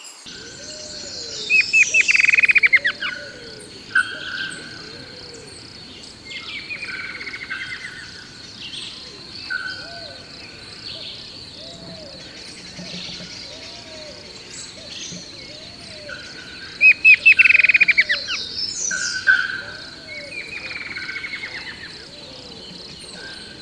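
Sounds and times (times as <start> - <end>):
insect chorus buzzing: 0.0 - 23.6
bird trilling: 0.3 - 5.5, 11.6 - 23.6.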